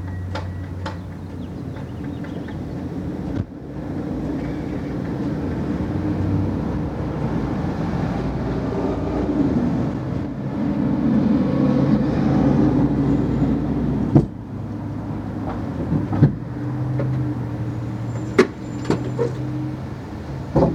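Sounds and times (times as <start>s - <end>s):
gas station ambience in Richland WA: 0.0s - 20.7s.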